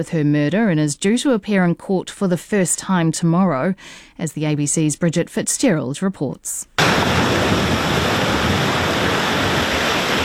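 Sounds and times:
speech: 0.0 - 8.2
waves breaking: 6.8 - 10.2.

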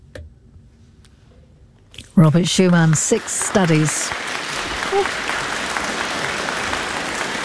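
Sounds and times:
speech: 2.2 - 4.3, 4.9 - 5.4
concert audience applause after a trio's performance: 2.4 - 7.4.

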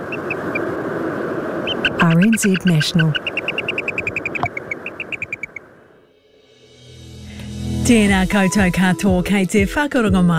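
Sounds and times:
white-bellied storm petrel call: 0.0 - 0.7, 1.6 - 5.7
speech: 2.0 - 3.3, 7.9 - 10.3.

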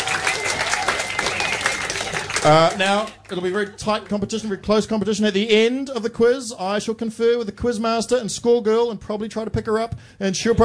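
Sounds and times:
audience applause at a pub-style quiz night: 0.0 - 4.1
speech: 2.4 - 10.6.

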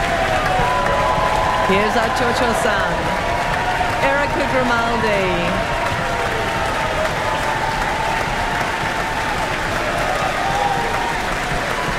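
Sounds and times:
audience cheering in the Auckland Town Hall: 0.0 - 11.9
speech: 1.7 - 3.1, 4.3 - 5.8.

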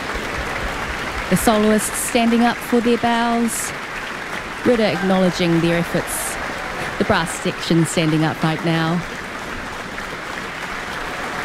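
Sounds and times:
concert audience applauding an orchestra after a symphony: 0.0 - 11.4
speech: 1.3 - 3.8, 4.6 - 6.2, 7.0 - 9.2.

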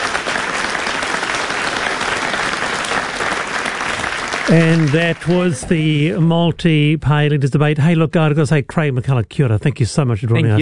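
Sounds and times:
large audience applause: 0.0 - 6.0
speech: 4.5 - 10.5.

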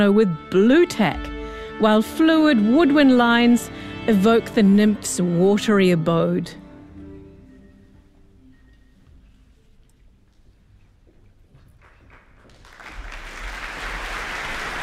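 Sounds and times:
speech: 0.0 - 6.6
soft sustained musical tones: 0.0 - 11.4
audience applause: 11.8 - 14.8.

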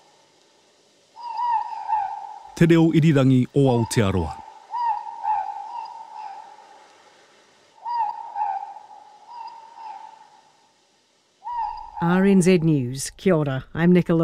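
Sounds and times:
morepork owl (ruru) hooting: 1.0 - 12.6
speech: 2.6 - 4.4, 12.0 - 14.2.

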